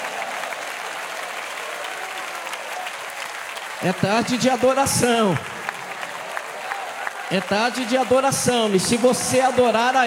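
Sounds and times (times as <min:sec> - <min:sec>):
audience clapping hands: 0:00.0 - 0:10.0
speech: 0:03.8 - 0:05.5, 0:07.3 - 0:10.0.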